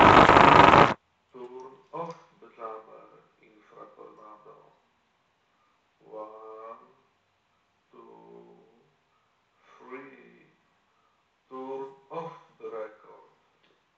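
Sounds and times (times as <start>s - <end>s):
INFRATORNADO audio jammer noise against HTC ONE M8: 0.0s - 1.0s.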